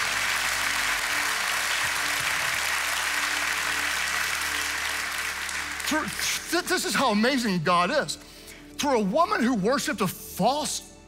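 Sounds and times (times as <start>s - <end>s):
audience clapping: 0.0s - 7.1s
speech: 5.9s - 10.9s.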